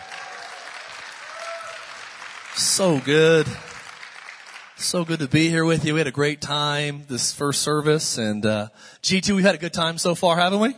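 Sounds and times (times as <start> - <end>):
church congregation applause for a pastor at a service: 0.0 - 5.6
speech: 2.6 - 3.7, 4.8 - 10.7.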